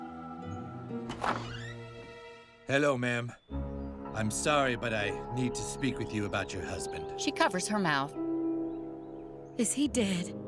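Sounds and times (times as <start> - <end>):
door opening: 1.0 - 2.0
speech: 1.2 - 1.6, 2.7 - 3.6, 4.2 - 8.2, 9.6 - 10.4.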